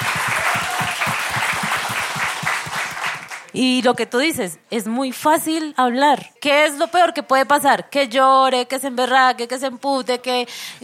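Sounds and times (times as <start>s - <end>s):
applause: 0.0s - 3.6s
speech: 3.6s - 10.8s.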